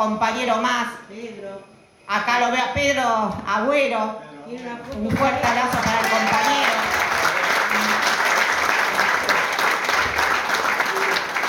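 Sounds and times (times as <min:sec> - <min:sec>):
speech: 0:00.0 - 0:07.1
applause: 0:04.9 - 0:11.4.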